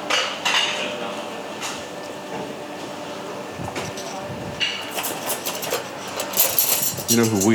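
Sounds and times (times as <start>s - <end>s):
people talking: 0.5s - 7.5s
cutlery and trays handled and set down: 1.6s - 7.5s.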